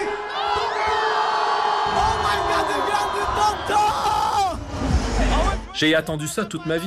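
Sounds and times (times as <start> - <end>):
large concert crowd cheering and screaming: 0.2 - 5.0
speech: 5.8 - 6.8.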